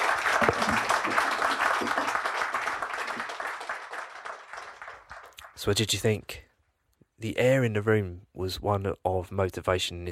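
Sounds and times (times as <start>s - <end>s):
audience applause: 0.0s - 5.7s
speech: 5.6s - 6.4s, 7.2s - 10.1s.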